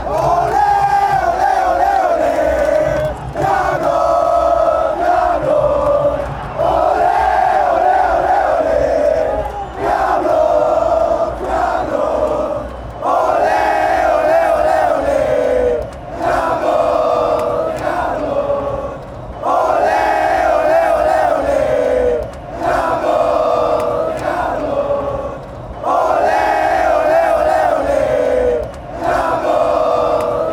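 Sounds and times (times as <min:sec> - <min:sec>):
crowd chanting: 0:00.0 - 0:30.5.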